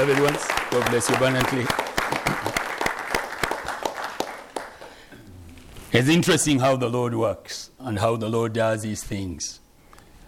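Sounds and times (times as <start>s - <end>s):
speech: 0.0s - 2.5s, 6.0s - 9.6s
audience applause: 0.0s - 5.0s.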